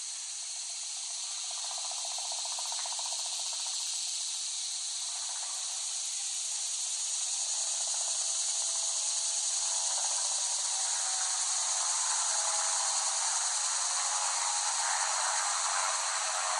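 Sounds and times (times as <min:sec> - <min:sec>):
cicadas buzzing: 0:00.0 - 0:16.5.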